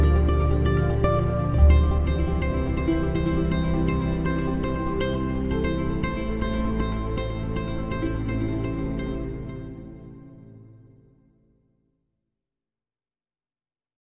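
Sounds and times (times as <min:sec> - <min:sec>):
piano: 0:00.0 - 0:10.7.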